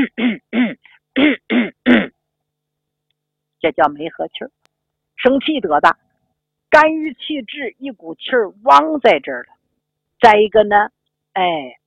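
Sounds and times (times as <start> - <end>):
person clearing throat: 0.0 - 2.2
speech: 3.7 - 4.6, 5.2 - 6.0, 6.7 - 9.6, 10.2 - 11.8.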